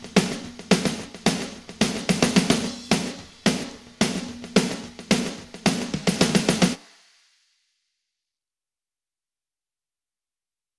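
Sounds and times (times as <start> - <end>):
drums: 0.0 - 7.5.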